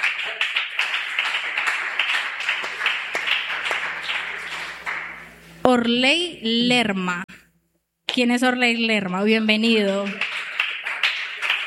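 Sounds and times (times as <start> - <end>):
audience applause welcoming a newcomer: 0.0 - 5.3, 10.1 - 11.6
speech: 5.8 - 7.3, 8.2 - 10.3.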